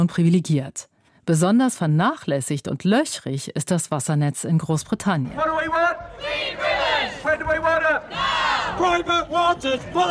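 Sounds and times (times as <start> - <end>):
speech: 0.0 - 10.0
protest crowd marching and chanting: 5.4 - 10.0.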